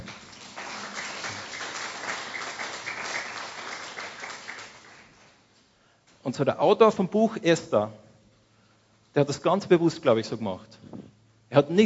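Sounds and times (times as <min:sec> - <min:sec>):
audience applause: 0:00.0 - 0:05.3
speech: 0:06.3 - 0:08.0, 0:09.2 - 0:11.8.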